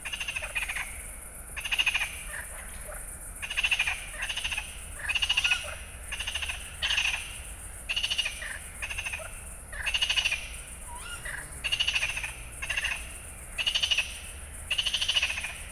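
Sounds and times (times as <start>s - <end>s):
frog chorus croaking at night at a pond in Fenouillet France: 0.0s - 15.7s.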